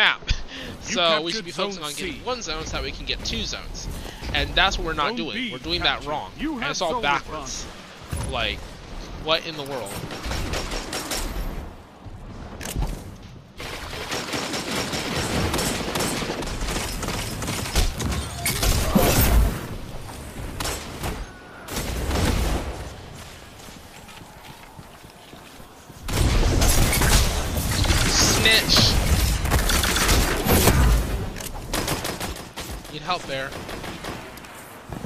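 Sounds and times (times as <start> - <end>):
speech: 0.9 - 10.6
gunfire from auto rifles, shotguns and sniper rifles in a Destiny 2 Crucible match: 12.4 - 23.7, 26.0 - 35.0.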